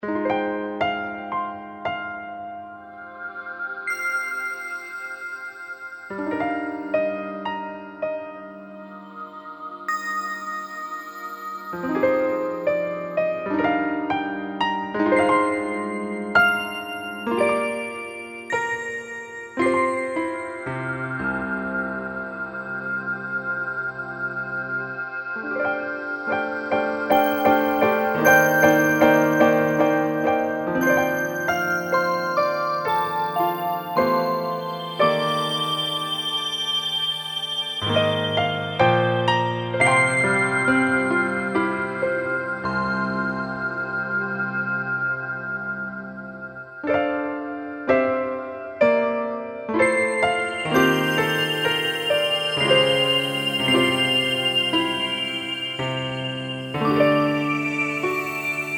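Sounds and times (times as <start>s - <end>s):
sad story music: 0.1s - 58.7s.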